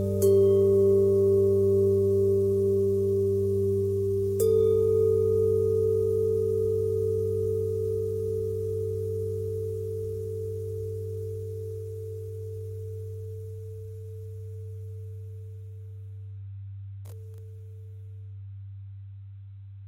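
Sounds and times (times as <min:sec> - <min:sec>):
long bell with pitch bend and twist: 0:00.0 - 0:15.7.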